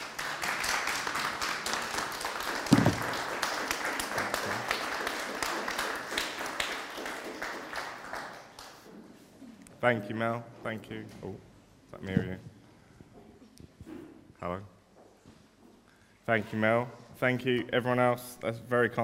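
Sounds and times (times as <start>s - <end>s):
audience clapping: 0.0s - 8.9s
speech: 9.8s - 12.5s, 14.4s - 14.7s, 16.3s - 19.0s.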